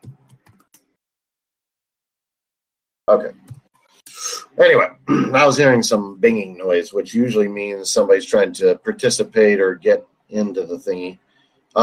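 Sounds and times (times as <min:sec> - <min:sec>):
typing on a computer keyboard during an online call: 0:00.0 - 0:00.9
speech: 0:03.1 - 0:03.4, 0:04.6 - 0:11.8.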